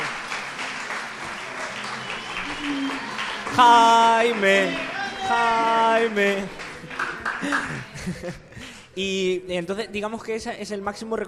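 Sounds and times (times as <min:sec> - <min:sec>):
audience applause: 0:00.0 - 0:08.1
speech: 0:03.6 - 0:06.6, 0:07.4 - 0:08.4, 0:09.0 - 0:11.2
laughter: 0:05.6 - 0:08.8.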